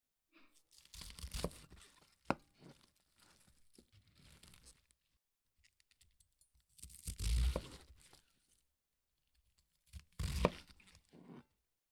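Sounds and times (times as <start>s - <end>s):
sharp kitchen knife slicing through a raw cabbage: 0.6s - 4.9s, 6.7s - 8.3s, 9.9s - 11.6s.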